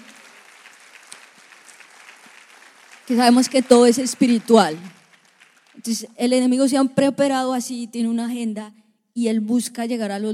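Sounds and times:
audience applause: 0:00.0 - 0:06.2
speech: 0:03.1 - 0:05.0, 0:05.8 - 0:10.3.

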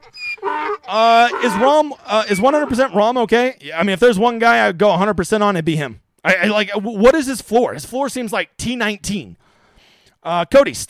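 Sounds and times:
dog whining and howling: 0:00.0 - 0:01.7
speech: 0:00.9 - 0:09.4, 0:10.2 - 0:10.8.

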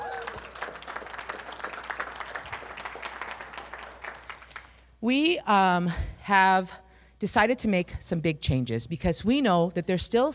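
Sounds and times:
audience applause: 0:00.0 - 0:04.8
speech: 0:05.0 - 0:10.3.

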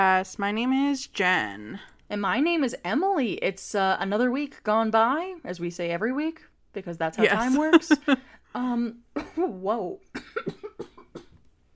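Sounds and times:
speech: 0:00.0 - 0:10.7
person coughing after inhaling spit: 0:10.2 - 0:11.4.

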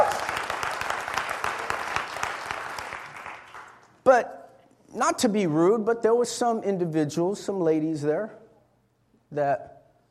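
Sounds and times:
audience clapping: 0:00.0 - 0:04.0
speech: 0:04.1 - 0:08.4, 0:09.3 - 0:09.7.

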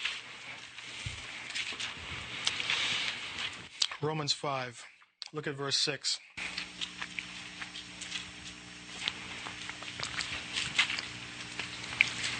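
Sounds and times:
Bible pages turning: 0:00.0 - 0:03.7, 0:06.4 - 0:12.3
speech: 0:04.0 - 0:06.3.

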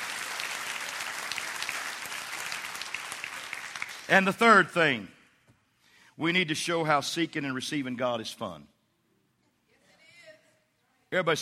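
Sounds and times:
audience clapping hands: 0:00.0 - 0:04.6
speech: 0:04.1 - 0:05.2, 0:06.2 - 0:08.7, 0:11.1 - 0:11.4.

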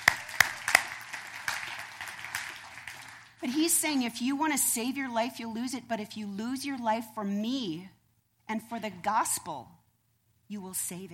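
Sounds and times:
audience applause: 0:00.0 - 0:03.4
speech: 0:03.4 - 0:09.8, 0:10.5 - 0:11.1.

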